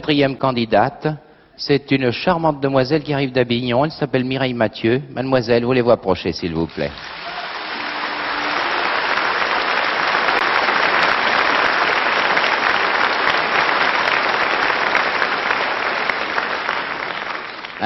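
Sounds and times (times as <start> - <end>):
speech: 0.0 - 7.2
audience applause: 6.7 - 17.8.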